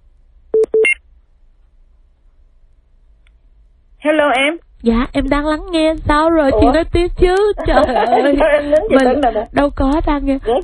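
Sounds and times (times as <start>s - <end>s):
telephone touch-tone beeps while dialing: 0.6s - 1.0s
speech: 4.0s - 10.6s
laughter: 7.4s - 9.5s.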